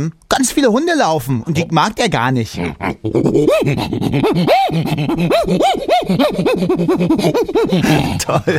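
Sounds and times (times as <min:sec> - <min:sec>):
speech: 0:00.0 - 0:08.5
voice imitating an agitated prosimian: 0:02.5 - 0:08.3.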